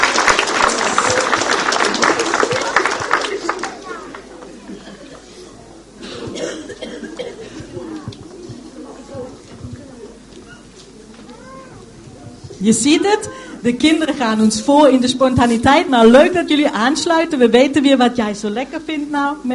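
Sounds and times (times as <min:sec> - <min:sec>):
applause: 0:00.0 - 0:04.6
speech: 0:12.7 - 0:19.5.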